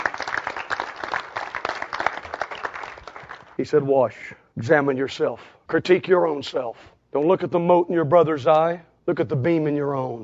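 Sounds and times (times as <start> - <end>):
audience clapping: 0.0 - 3.6
speech: 3.6 - 10.2.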